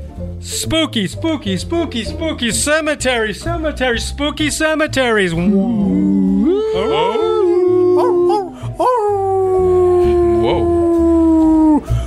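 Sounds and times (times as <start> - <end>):
low rhythmic backing: 0.0 - 12.0
speech: 0.4 - 7.3
dogs howling: 5.4 - 11.8.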